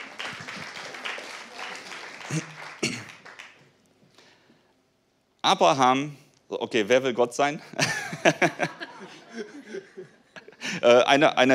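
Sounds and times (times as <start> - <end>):
audience applause: 0.0 - 3.8
speech: 2.3 - 3.0, 5.4 - 8.8, 10.8 - 11.5.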